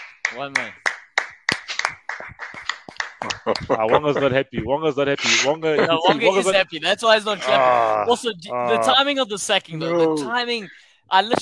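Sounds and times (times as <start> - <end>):
round of applause clapping: 0.0 - 4.2
speech: 0.3 - 0.9, 3.4 - 11.4
laughter: 2.4 - 11.4.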